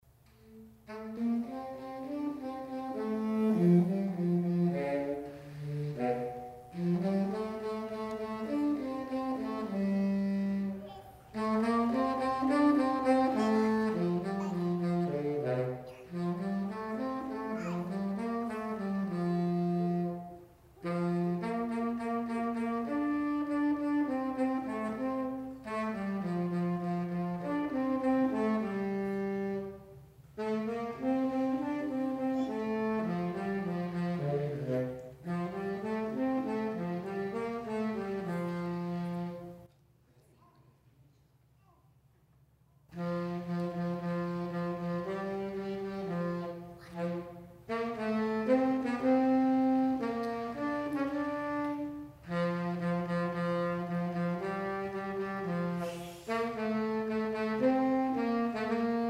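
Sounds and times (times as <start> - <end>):
instrumental music: 0.1 - 39.8, 42.9 - 59.0.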